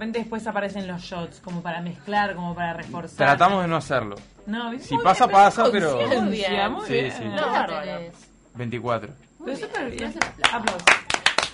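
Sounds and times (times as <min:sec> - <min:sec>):
speech: 0:00.0 - 0:11.1
applause sound effect: 0:10.0 - 0:11.5.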